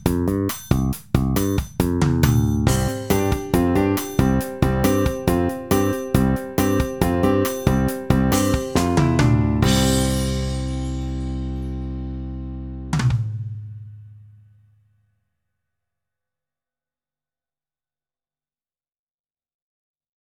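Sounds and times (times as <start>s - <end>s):
music track at 138 bpm: 0.0s - 13.4s.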